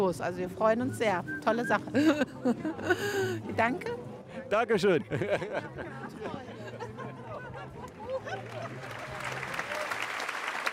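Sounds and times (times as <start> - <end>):
speech: 0.0 - 6.8
laughter: 1.8 - 4.0, 4.6 - 9.9
audience applause at a circus: 7.9 - 10.7.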